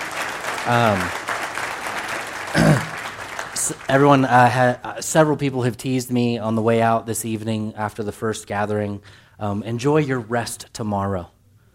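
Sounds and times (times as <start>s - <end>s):
audience round of applause: 0.0s - 4.7s
speech: 0.7s - 1.2s, 2.5s - 2.8s, 3.7s - 11.4s.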